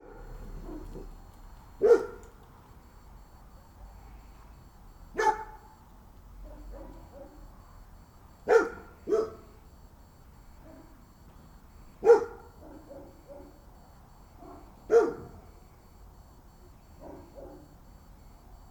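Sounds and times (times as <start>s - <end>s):
dog barking loud woofs: 0.0s - 1.1s, 1.8s - 2.2s, 5.2s - 5.6s, 6.4s - 7.4s, 8.5s - 9.5s, 10.6s - 10.9s, 12.0s - 13.6s, 14.4s - 15.4s, 17.0s - 17.7s.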